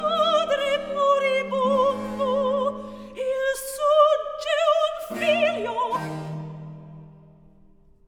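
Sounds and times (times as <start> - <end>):
soprano singing a cantata recitative with continuo: 0.0 - 6.6.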